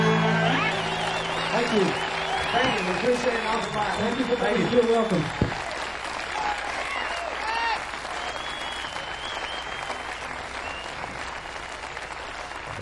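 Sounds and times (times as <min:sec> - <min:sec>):
crowd voices: 0:00.0 - 0:07.8
audience applauding a bluegrass band: 0:00.0 - 0:12.7
whistles: 0:00.5 - 0:05.2, 0:08.1 - 0:11.2
speech: 0:01.7 - 0:05.4.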